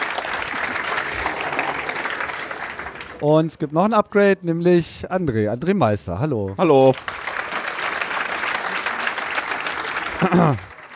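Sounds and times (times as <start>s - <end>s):
audience applause: 0.0s - 3.8s, 6.2s - 10.9s
speech: 3.2s - 7.2s, 10.2s - 10.7s.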